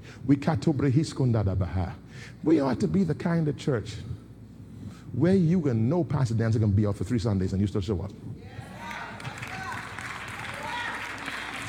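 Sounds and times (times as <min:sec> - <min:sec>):
speech: 0:00.2 - 0:04.2, 0:05.1 - 0:08.6
crowd clapping: 0:08.8 - 0:11.6.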